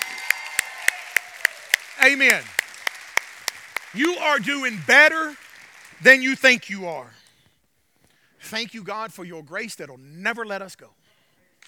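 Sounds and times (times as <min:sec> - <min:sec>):
audience clapping hands in unison: 0:00.0 - 0:07.2
speech: 0:02.0 - 0:02.6, 0:03.9 - 0:05.4, 0:06.0 - 0:07.2, 0:08.4 - 0:11.0.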